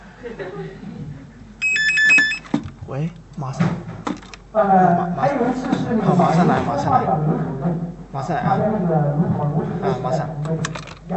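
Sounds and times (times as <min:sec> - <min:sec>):
laughter: 0:00.1 - 0:01.5
speech: 0:00.2 - 0:01.2, 0:02.9 - 0:11.1
telephone ringing: 0:01.6 - 0:02.5.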